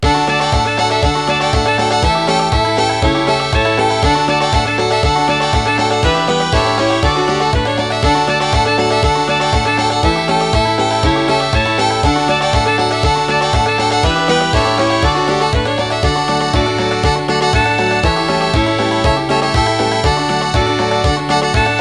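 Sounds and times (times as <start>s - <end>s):
circus songs backing track: 0.0s - 21.8s.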